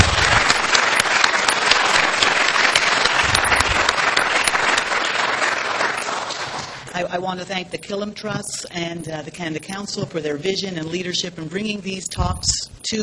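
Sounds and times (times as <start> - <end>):
audience applause after a university talk: 0.0 - 6.9
speech: 7.0 - 13.0.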